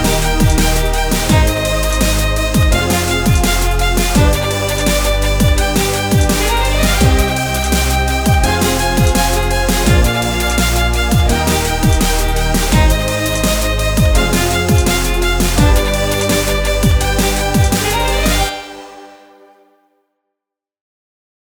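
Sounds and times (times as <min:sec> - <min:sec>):
bass sound: 0:00.0 - 0:18.8.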